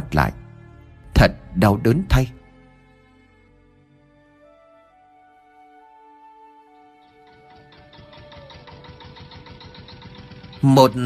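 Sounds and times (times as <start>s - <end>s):
speech: 0.1s - 0.4s, 1.2s - 2.4s, 10.6s - 11.0s
old three-wheeled farm vehicle engine chugging: 6.9s - 11.0s.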